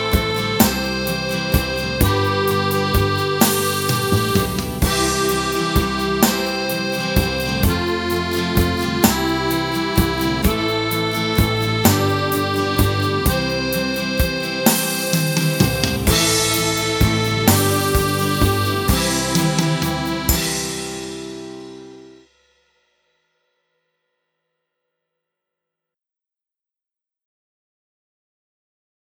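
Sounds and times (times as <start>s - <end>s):
partial playback backing track: 0.0s - 22.2s.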